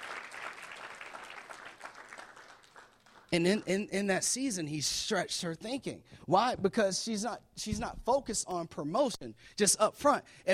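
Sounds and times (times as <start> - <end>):
audience clapping: 0.0 - 3.9
speech: 3.3 - 10.5.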